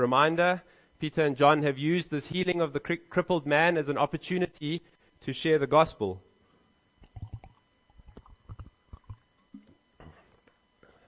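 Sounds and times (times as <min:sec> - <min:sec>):
speech: 0:00.0 - 0:06.3
glugs of water being swallowed or poured: 0:07.0 - 0:09.8.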